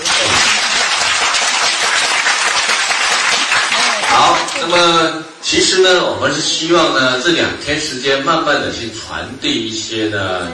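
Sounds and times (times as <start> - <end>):
audience applause: 0.0 - 5.0
speech: 4.7 - 10.5.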